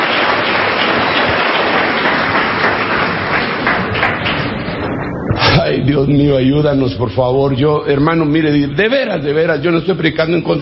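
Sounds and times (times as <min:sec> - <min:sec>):
audience applause: 0:00.0 - 0:05.7
speech: 0:05.9 - 0:10.6.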